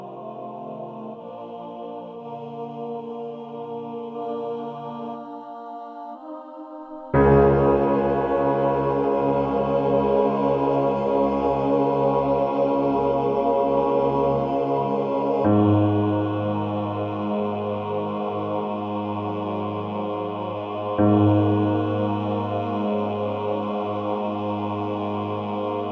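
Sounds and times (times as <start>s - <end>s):
bass: 7.2s - 25.9s.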